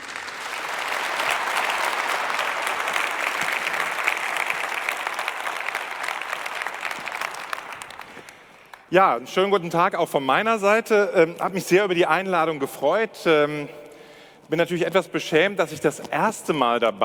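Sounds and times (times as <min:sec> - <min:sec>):
applause: 0:00.0 - 0:08.9
speech: 0:08.9 - 0:13.8, 0:14.5 - 0:17.0.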